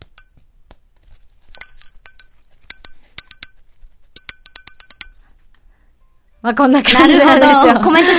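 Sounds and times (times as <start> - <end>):
handmade wind chime being rung: 0.0 - 0.4, 1.6 - 3.6, 4.2 - 5.2
speech: 6.4 - 8.1.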